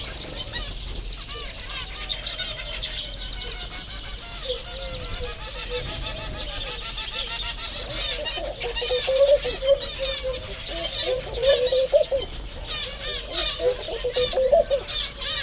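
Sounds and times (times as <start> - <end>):
bird chatter: 0.0 - 15.4
white-handed gibbon calling: 8.1 - 15.1.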